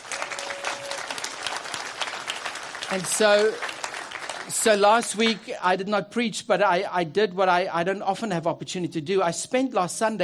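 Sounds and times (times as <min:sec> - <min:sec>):
church congregation applauding: 0:00.0 - 0:05.6
speech: 0:02.9 - 0:03.7, 0:04.5 - 0:10.2.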